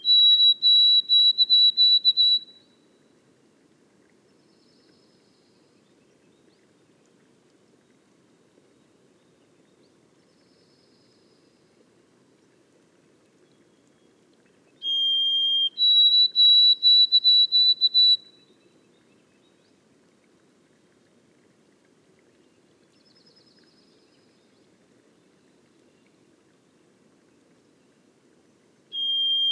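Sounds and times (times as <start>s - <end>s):
White-throated sparrow whistled song in boreal forest: 0.0s - 2.7s, 14.8s - 18.6s, 28.9s - 29.5s.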